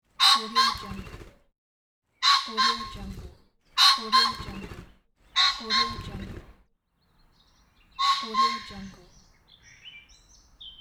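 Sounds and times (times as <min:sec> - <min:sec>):
pheasant squawking: 0:00.2 - 0:01.2, 0:02.2 - 0:03.1, 0:03.8 - 0:04.8, 0:05.4 - 0:06.4, 0:08.0 - 0:09.2.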